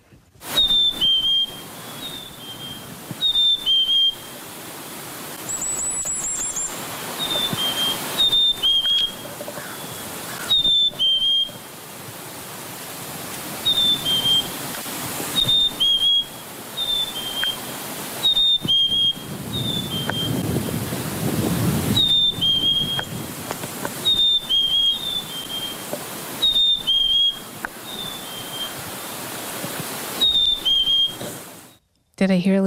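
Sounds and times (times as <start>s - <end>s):
steady hiss of noise: 0.0s - 32.3s
chickadee spring song of clear high two-note whistles: 0.5s - 4.3s, 7.2s - 9.2s, 10.4s - 11.6s, 13.7s - 14.6s, 15.4s - 17.6s, 18.2s - 20.3s, 22.0s - 23.1s, 24.0s - 28.8s, 30.2s - 31.8s.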